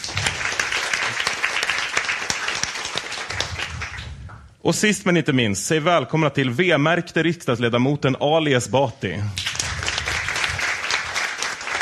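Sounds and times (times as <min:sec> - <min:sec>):
audience applause: 0:00.0 - 0:04.2, 0:09.4 - 0:11.8
speech: 0:04.6 - 0:09.4.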